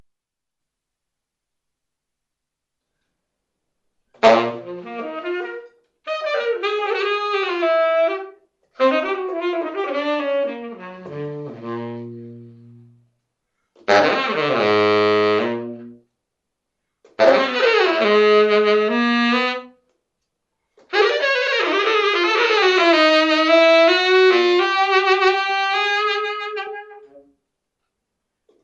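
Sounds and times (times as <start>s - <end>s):
musical improvisation in B flat: 4.2s - 13.2s, 13.8s - 16.1s, 17.1s - 19.9s, 20.8s - 27.4s.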